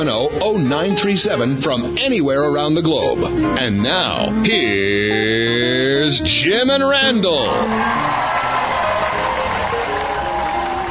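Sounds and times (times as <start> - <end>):
speech: 0.0 - 8.3
studio crowd cheering: 7.1 - 10.8.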